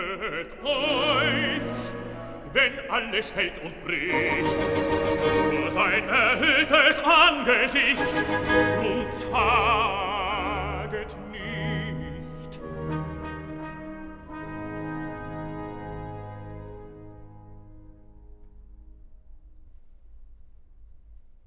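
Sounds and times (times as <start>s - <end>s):
bass voice singing recitative: 0.0s - 12.9s.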